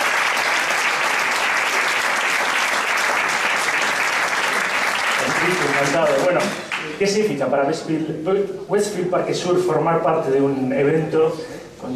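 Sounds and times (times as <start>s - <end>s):
audience clapping at a community event: 0.0s - 7.1s
speech: 5.8s - 11.9s.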